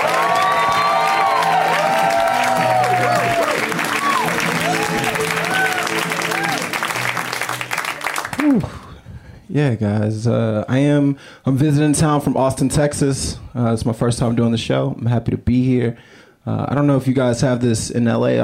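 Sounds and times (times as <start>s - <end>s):
audience applause: 0.0s - 8.9s
speech: 9.6s - 18.4s.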